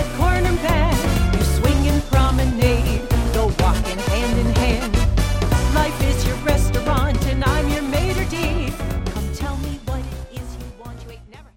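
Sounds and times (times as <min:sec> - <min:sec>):
vocal sample: 0:00.0 - 0:11.1.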